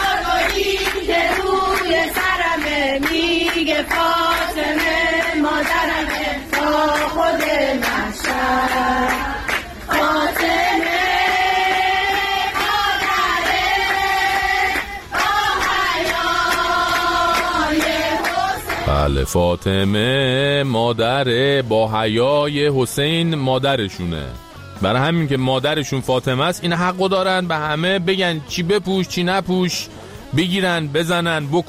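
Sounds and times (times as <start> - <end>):
group of women singing an anthem in unison in a metro carriage: 0.0 - 18.9
speech: 19.2 - 31.6.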